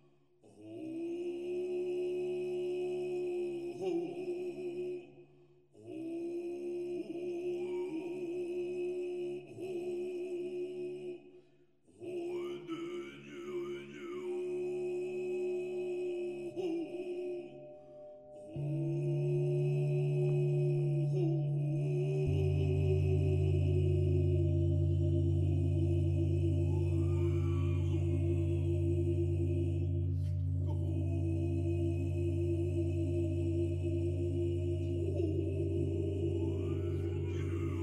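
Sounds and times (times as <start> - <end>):
Buddhist chanting: 0.0 - 37.8
deep drone: 16.0 - 37.8.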